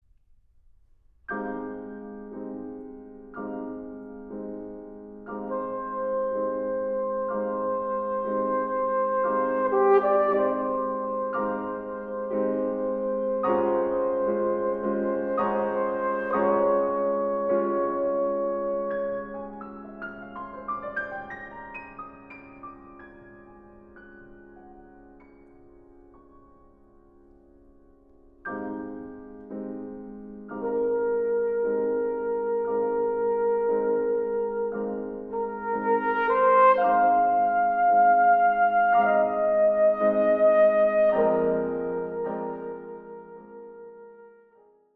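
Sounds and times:
piano: 0.0s - 44.9s
trumpet: 5.3s - 20.2s, 30.5s - 44.9s.

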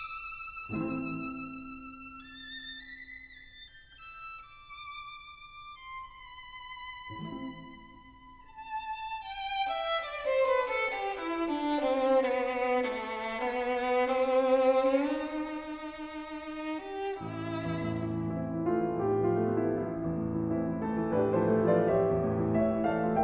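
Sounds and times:
piano quartet: 0.7s - 2.3s, 9.8s - 23.1s.

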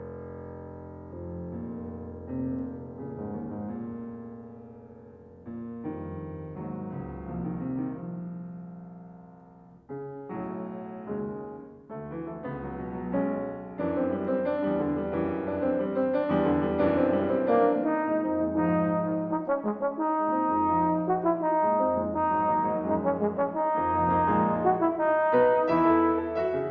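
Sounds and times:
piano: 0.0s - 26.7s
trombone: 16.5s - 26.7s.

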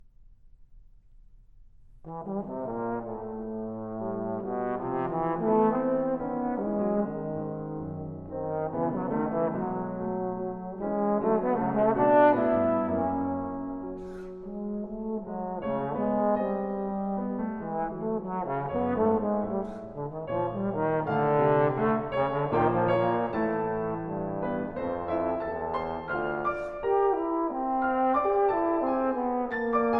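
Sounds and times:
piano in a clarinet and piano sonata: 1.6s - 29.9s
clarinet in a clarinet and piano sonata: 2.3s - 29.9s.

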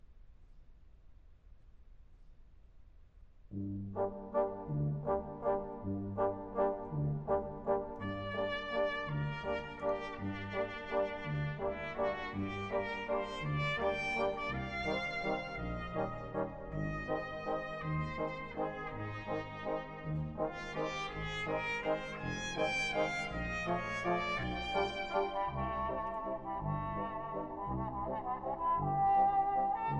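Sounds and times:
brass waltz: 3.6s - 29.9s.

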